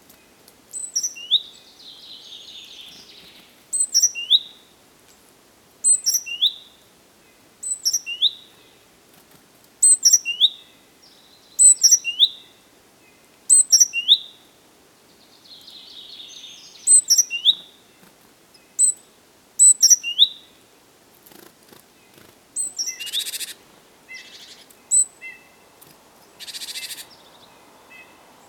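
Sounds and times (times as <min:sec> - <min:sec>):
great tit call series: 0:00.7 - 0:04.6, 0:05.8 - 0:06.7, 0:07.6 - 0:08.7, 0:09.8 - 0:12.5, 0:13.2 - 0:14.4, 0:15.4 - 0:17.8, 0:18.5 - 0:20.4, 0:22.1 - 0:25.6, 0:26.2 - 0:28.4.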